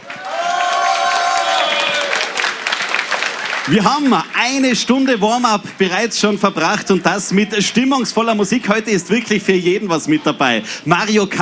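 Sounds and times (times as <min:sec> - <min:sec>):
cheers and whistles: 0:00.0 - 0:02.6
large crowd applauding: 0:00.0 - 0:05.1
speech: 0:03.7 - 0:11.4.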